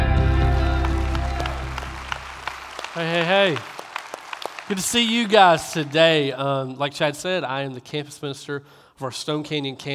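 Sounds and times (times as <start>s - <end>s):
sustained music: 0.0s - 2.5s
church audience applause welcoming a minister: 0.2s - 6.4s
speech: 3.0s - 3.7s, 4.7s - 9.9s.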